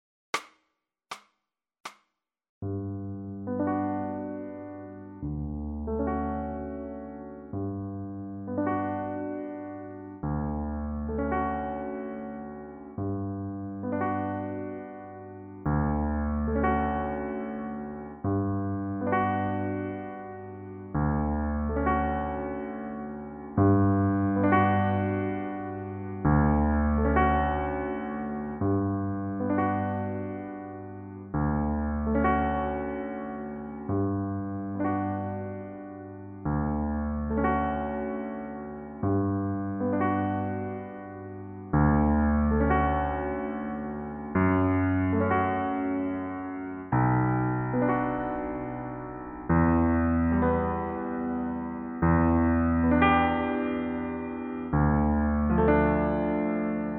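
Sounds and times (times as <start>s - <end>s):
solo piano: 2.6s - 56.9s.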